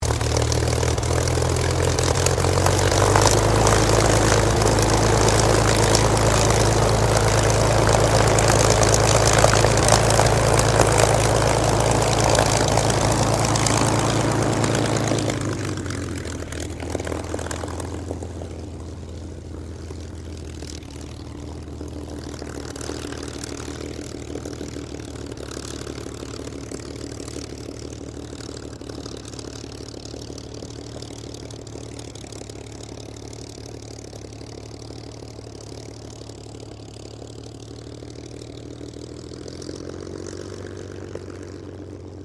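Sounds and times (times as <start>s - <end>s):
Supermarine Spitfire Mk XVI aircraft idling while taxiing: 0.0s - 42.2s.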